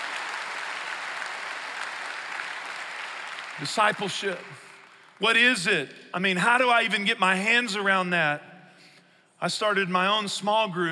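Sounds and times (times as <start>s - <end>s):
roomful of people applauding: 0.0s - 5.2s
speech: 3.6s - 8.5s, 9.4s - 10.9s.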